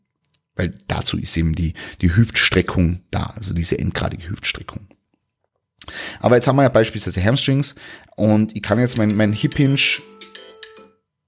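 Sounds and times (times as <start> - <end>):
speech: 0.6 - 5.0, 5.8 - 10.3
phone alarm clock ringing: 9.4 - 10.9.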